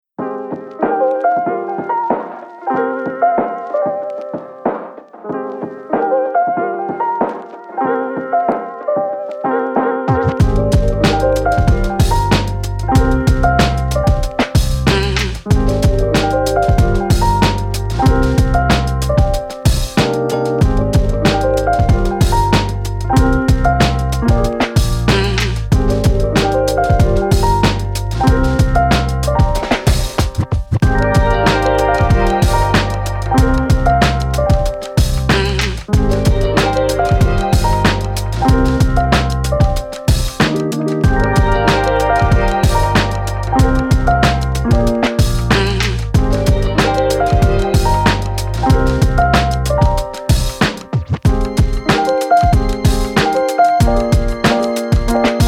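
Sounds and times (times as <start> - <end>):
vlog background music: 0.2 - 55.4.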